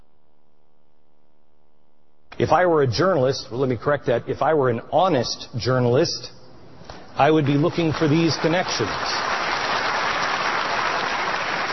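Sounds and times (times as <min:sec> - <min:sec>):
speech: 0:02.4 - 0:06.4, 0:07.2 - 0:09.4
audience clapping: 0:07.4 - 0:11.7.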